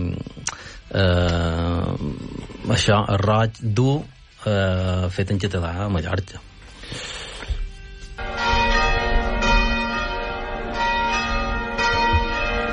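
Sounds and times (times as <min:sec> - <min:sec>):
speech: 0:00.9 - 0:07.1
church bells ringing: 0:08.2 - 0:12.7.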